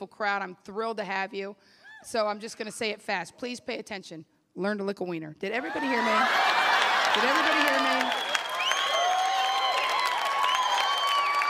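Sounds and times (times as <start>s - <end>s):
speech: 0.0s - 6.6s, 7.2s - 8.3s
person cheering: 5.6s - 11.4s.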